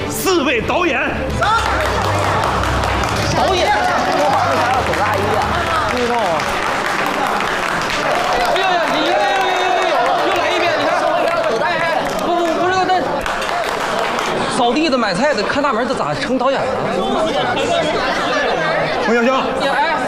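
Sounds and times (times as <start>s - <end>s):
speech: 0.5s - 2.3s, 3.4s - 6.5s, 14.6s - 18.4s, 19.1s - 19.9s
warm audience applause: 1.4s - 15.2s.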